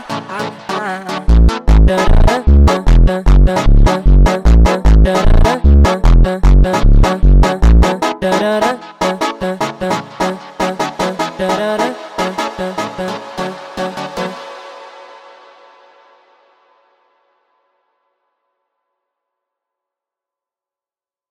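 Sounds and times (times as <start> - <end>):
sped up funk music: 0.0 - 14.4.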